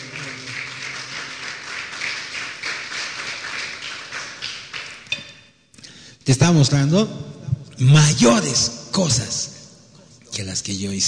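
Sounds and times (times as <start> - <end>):
audience applause: 0.0 - 5.1
speech: 6.3 - 9.5, 10.4 - 11.0.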